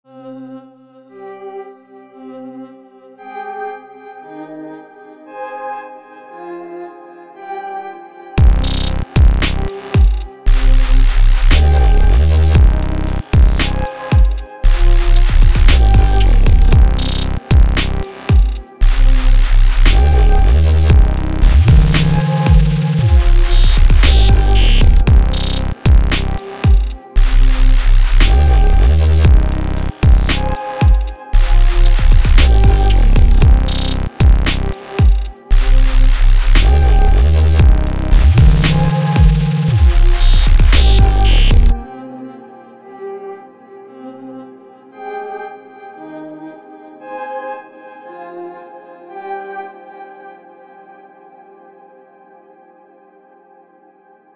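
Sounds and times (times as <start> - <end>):
dubstep music: 8.4 - 41.9.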